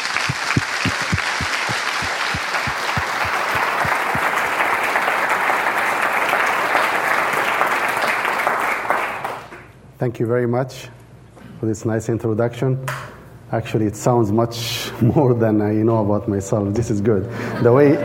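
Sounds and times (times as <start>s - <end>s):
audience applause welcoming a guest speaker to the stage: 0.0s - 9.5s
speech: 10.0s - 11.0s, 11.6s - 18.0s.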